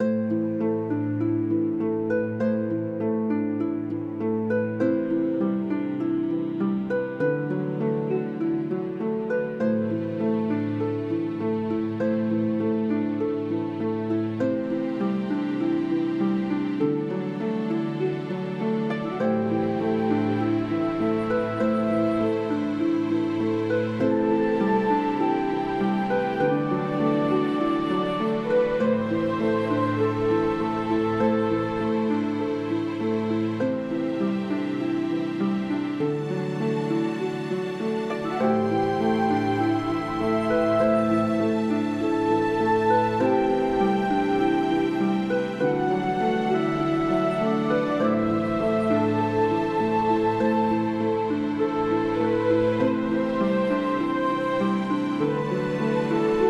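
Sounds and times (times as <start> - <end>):
ambient music: 0.0 - 56.4.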